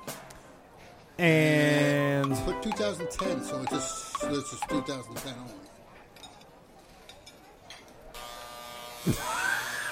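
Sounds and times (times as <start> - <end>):
speech: 1.2 - 1.6, 2.2 - 5.8
electric trimmer buzzing while trimming a beard: 8.2 - 9.4.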